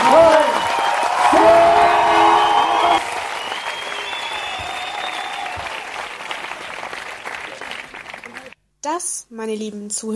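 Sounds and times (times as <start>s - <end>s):
audience applause, frenetic clapping: 0.0s - 8.6s
speech: 9.3s - 10.1s.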